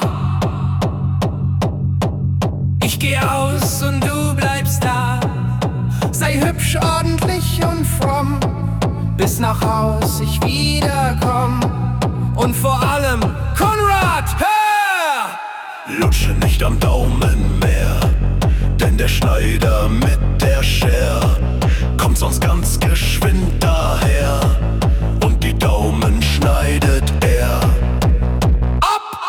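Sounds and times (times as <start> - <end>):
techno music: 0.1 - 14.4, 16.0 - 29.1.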